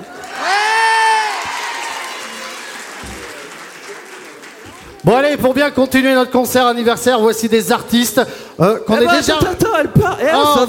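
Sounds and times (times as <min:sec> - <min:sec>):
crowd applause: 0:00.0 - 0:05.2
speech: 0:05.0 - 0:10.6.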